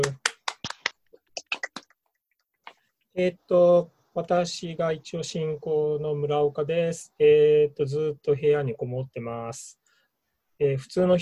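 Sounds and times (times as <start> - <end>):
hands clapping: 0.0 - 2.8
speech: 3.2 - 9.8, 10.6 - 11.2.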